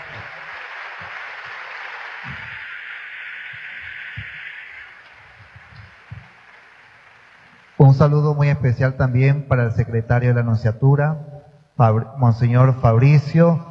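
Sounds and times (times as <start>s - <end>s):
applause: 0.0s - 7.8s
speech: 7.9s - 13.6s.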